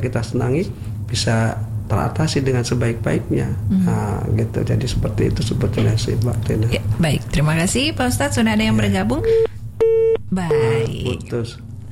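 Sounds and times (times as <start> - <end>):
speech: 0.0 - 9.5, 10.3 - 11.7
telephone line beeps as a radio phone-in call drops: 9.2 - 11.0.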